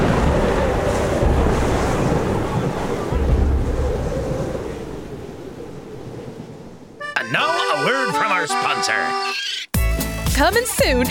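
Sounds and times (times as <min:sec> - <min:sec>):
wind in a storm at sea: 0:00.0 - 0:07.6
waves in a storm at sea: 0:00.0 - 0:09.0
speech: 0:10.4 - 0:11.0.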